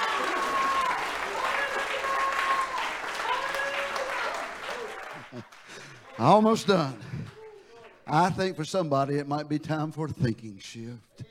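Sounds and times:
audience hand clapping: 0.0s - 8.6s
speech: 6.2s - 7.0s, 8.1s - 11.1s.

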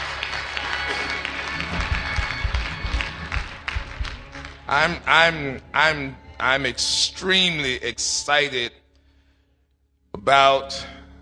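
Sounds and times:
crowd noise: 0.0s - 4.4s
audience hand clapping: 0.0s - 5.3s
speech: 4.7s - 8.8s, 10.2s - 11.0s.

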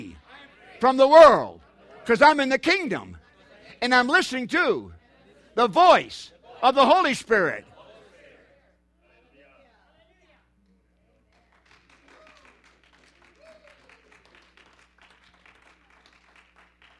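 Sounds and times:
speech: 0.8s - 3.2s, 3.8s - 5.0s, 5.6s - 7.7s
church audience clapping: 11.3s - 16.9s.

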